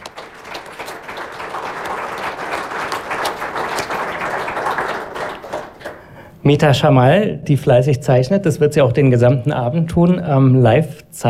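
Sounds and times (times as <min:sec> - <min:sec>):
audience applause: 0:00.0 - 0:06.2
speech: 0:06.4 - 0:11.2.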